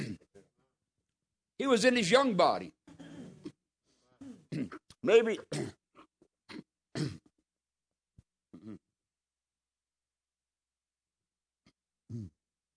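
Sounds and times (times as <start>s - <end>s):
person clearing throat: 0.0s - 0.4s, 4.2s - 7.4s, 8.5s - 8.9s, 12.1s - 12.4s
person coughing: 0.0s - 0.4s, 4.2s - 7.4s
speech: 1.6s - 2.8s, 4.6s - 5.8s.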